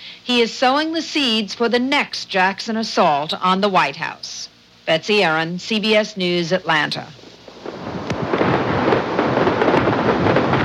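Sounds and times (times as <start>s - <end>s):
speech: 0.2s - 7.2s
fireworks exploding: 7.5s - 10.6s.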